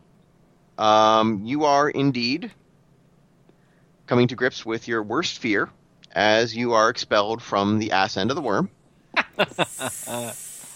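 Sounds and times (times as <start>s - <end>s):
speech: 0.8s - 2.6s, 4.1s - 8.8s, 9.4s - 10.5s
laughter: 9.2s - 10.5s
high hiss of escaping steam: 9.5s - 10.7s.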